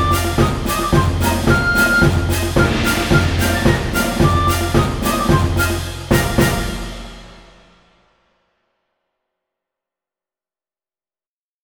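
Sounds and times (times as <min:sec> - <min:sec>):
gavotte: 0:00.0 - 0:07.7.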